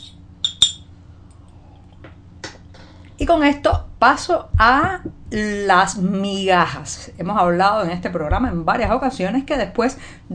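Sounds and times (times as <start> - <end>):
low hum: 0.0 - 10.3
glass clinking: 0.4 - 0.9
speech: 3.3 - 10.3.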